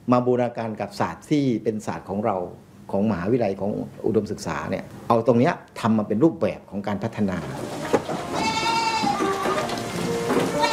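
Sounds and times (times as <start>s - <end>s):
steady hiss: 0.0s - 10.7s
speech: 0.1s - 7.8s
goats bleating: 7.7s - 10.7s.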